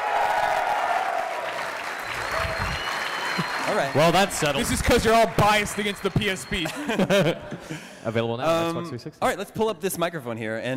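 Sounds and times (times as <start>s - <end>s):
audience applause: 0.0s - 6.8s
laughter: 2.2s - 8.0s
speech: 3.7s - 10.7s.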